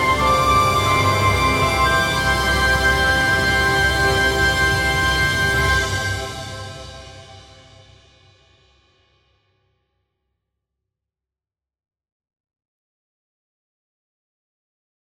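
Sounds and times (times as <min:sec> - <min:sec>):
choral singing of a Sanctus: 0:00.0 - 0:07.6.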